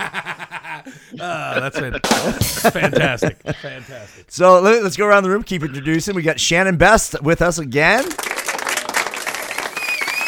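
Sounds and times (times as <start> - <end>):
laughter: 0.0 - 4.2
speech: 1.0 - 8.3
small group applauding: 7.9 - 10.2
faint whistle-like tone: 9.7 - 10.2.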